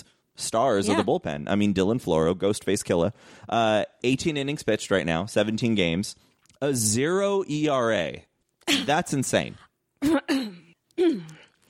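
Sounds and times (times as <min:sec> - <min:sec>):
speech: 0:00.4 - 0:11.4
cough: 0:10.0 - 0:11.3.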